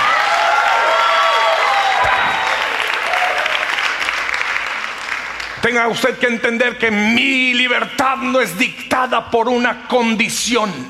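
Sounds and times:
joyful shouts and cheering voices: 0.0s - 3.7s
audience applause: 0.0s - 5.6s
speech: 5.6s - 10.8s.

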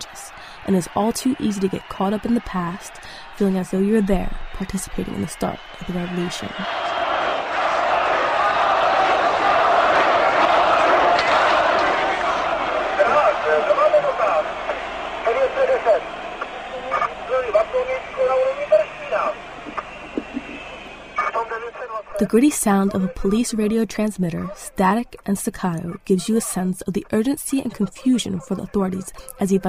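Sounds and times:
thousands of angry protesters shouting at police: 0.0s - 22.2s
speech: 0.7s - 6.9s, 22.3s - 29.6s.

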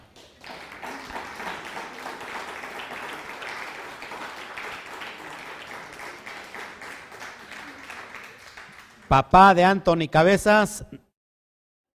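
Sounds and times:
audience applause: 0.0s - 9.2s
speech: 9.1s - 11.0s.

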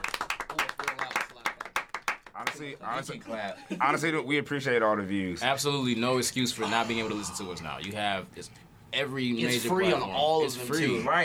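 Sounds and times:
small group clapping hands: 0.0s - 2.7s
speech: 2.6s - 11.2s
vocal sounds: 6.6s - 7.9s.

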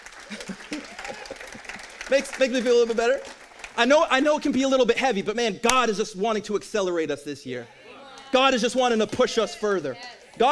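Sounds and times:
audience clapping: 0.0s - 4.9s
speech: 2.1s - 10.5s.

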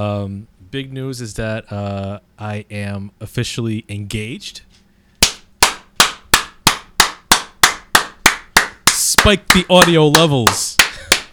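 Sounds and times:
speech: 0.0s - 4.7s, 9.2s - 11.1s
sharp loud hand claps: 5.2s - 11.3s.

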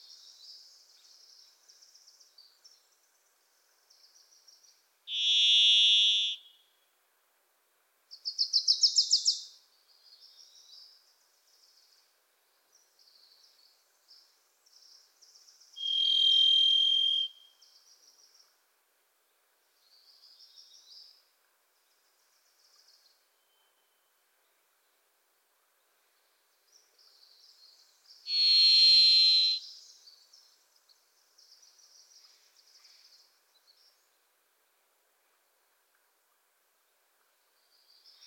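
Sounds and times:
Varied thrush buzzy whistle: 5.1s - 6.4s, 15.8s - 17.4s, 28.3s - 29.6s.

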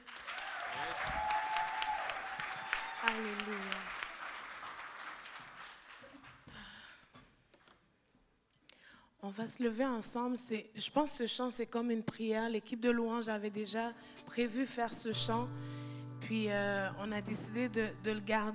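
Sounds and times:
audience applauding: 0.0s - 6.9s
speech: 3.0s - 3.9s, 9.4s - 18.5s.

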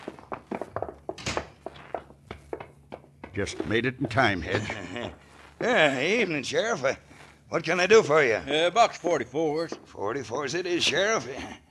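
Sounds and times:
footsteps running up a flight of stairs: 0.0s - 4.9s
speech: 3.4s - 11.6s.

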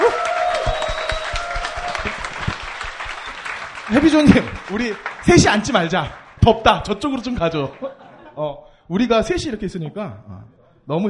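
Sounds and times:
audience applause: 0.0s - 8.0s
speech: 3.9s - 11.0s
laughter: 7.6s - 8.6s.

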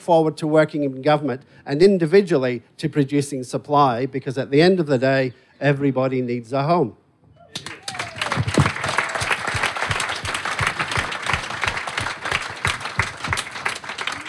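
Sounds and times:
speech: 0.0s - 7.7s
audience applause: 7.5s - 14.2s.

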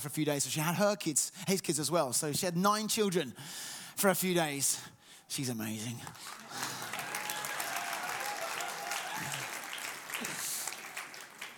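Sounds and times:
speech: 0.0s - 6.7s
crowd applauding: 6.2s - 11.5s
faint high whistle or cheer: 6.8s - 11.0s.

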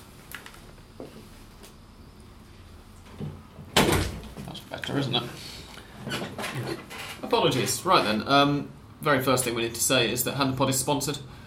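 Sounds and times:
kitchen door being pushed shut: 3.7s - 4.4s
speech: 4.8s - 11.4s.

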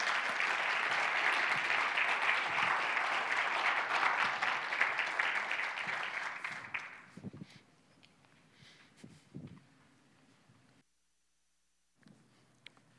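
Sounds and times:
church audience clapping to welcome back a guest pastor: 0.0s - 7.2s.

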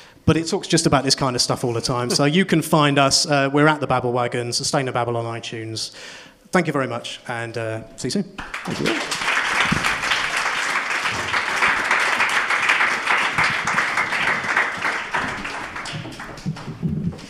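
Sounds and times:
speech: 0.3s - 9.2s
crowd applause: 8.4s - 16.8s.

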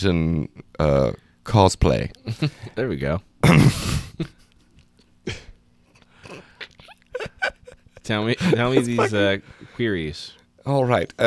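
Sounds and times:
speech: 0.0s - 4.4s, 5.3s - 5.5s, 8.0s - 11.2s
loud rough burp: 3.4s - 3.8s
laughter: 6.2s - 9.4s.

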